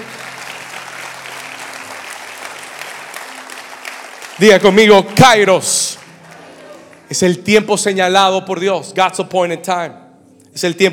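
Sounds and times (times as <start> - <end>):
audience applause: 0.0 - 7.1
speech: 4.4 - 6.0, 7.1 - 10.0, 10.6 - 10.9.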